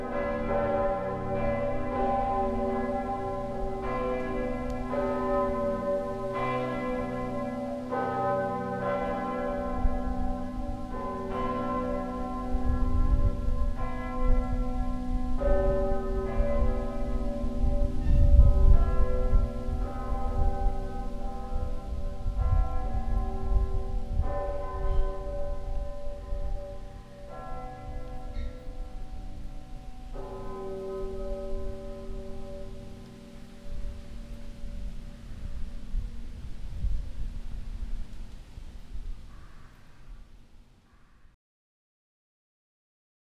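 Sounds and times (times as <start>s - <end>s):
large bells pealing: 0.0s - 36.6s.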